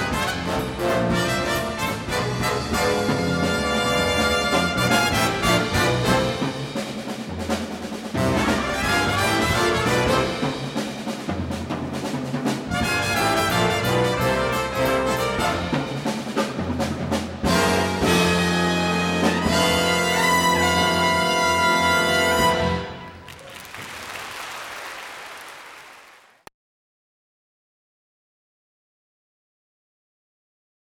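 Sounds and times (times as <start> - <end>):
jazz trumpets: 0.0 - 11.2, 12.5 - 24.2.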